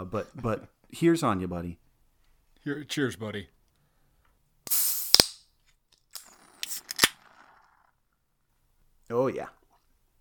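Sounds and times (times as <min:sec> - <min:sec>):
speech: 0:00.0 - 0:01.8, 0:02.6 - 0:03.6, 0:09.1 - 0:09.6
beer can cracking open with a hiss: 0:04.7 - 0:05.4, 0:06.1 - 0:07.3.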